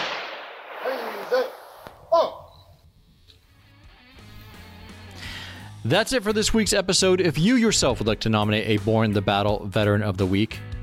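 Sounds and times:
ceremonial rifle volley salute honoring a veteran: 0.0 - 2.4
shouted commands: 0.8 - 2.6
speech: 1.3 - 1.6, 5.8 - 10.8.

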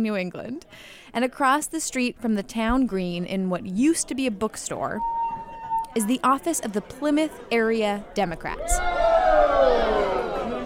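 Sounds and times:
speech: 0.0 - 5.2, 6.0 - 9.0
people in a room doing the wave: 8.6 - 10.6.

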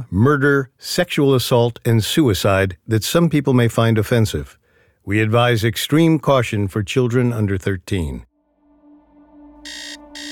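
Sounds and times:
speech: 0.0 - 8.3
blaring alarm clock: 9.6 - 10.2.

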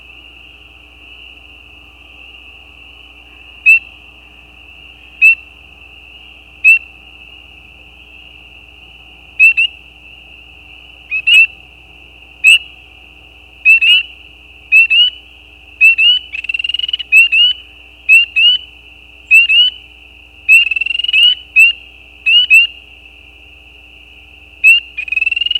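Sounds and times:
spring peeper mating call: 3.0 - 7.4, 8.0 - 11.7, 12.3 - 13.0, 13.6 - 22.9, 24.6 - 25.5.

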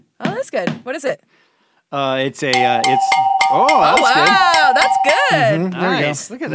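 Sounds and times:
speech: 0.4 - 6.5
cowbell being struck: 2.6 - 5.6.

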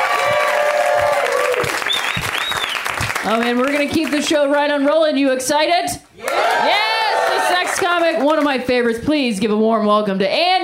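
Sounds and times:
audience applause welcoming a comedian to the stage: 0.0 - 4.1, 6.2 - 8.5
speech: 3.2 - 6.8, 7.5 - 10.6.

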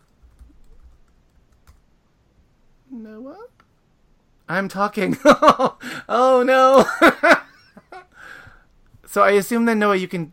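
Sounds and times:
faint typing on a computer keyboard: 0.0 - 1.8
low steady hum: 0.0 - 10.3
speech: 3.0 - 3.6, 4.5 - 7.4, 9.1 - 10.3.

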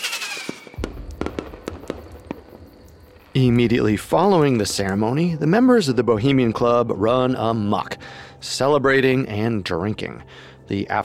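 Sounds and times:
firework launch hiss: 0.0 - 3.0
fireworks bursting above a lake: 0.0 - 4.9
low rumbling background: 0.8 - 6.9
speech: 3.4 - 11.0.

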